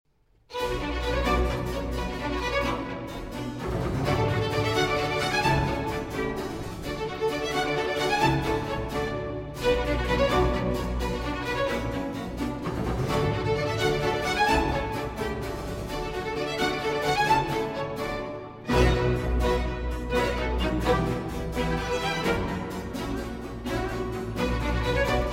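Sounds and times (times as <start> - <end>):
string orchestra with continuo playing a concerto in B minor: 0.4 - 25.3.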